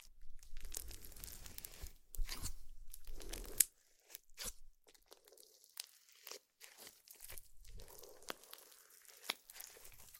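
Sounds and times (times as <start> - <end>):
slime being squished and pressed: 0.6 - 10.1.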